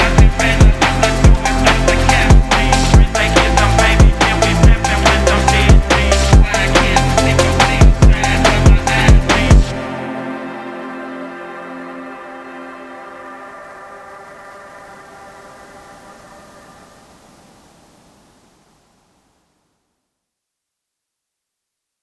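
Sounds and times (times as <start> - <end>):
phonk drum and bass music: 0.0 - 10.4.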